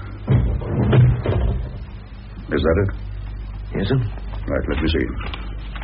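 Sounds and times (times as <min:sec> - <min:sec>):
door shutting: 0:00.3 - 0:01.9
speech: 0:02.6 - 0:03.1, 0:03.7 - 0:05.4.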